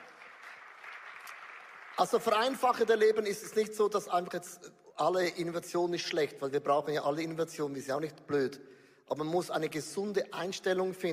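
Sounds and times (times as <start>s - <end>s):
applause: 0.0s - 3.4s
speech: 2.0s - 11.1s.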